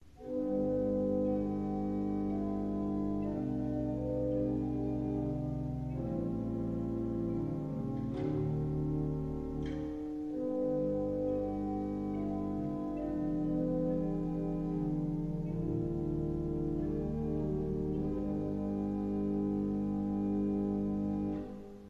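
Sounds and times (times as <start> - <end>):
pipe organ: 0.0 - 21.8.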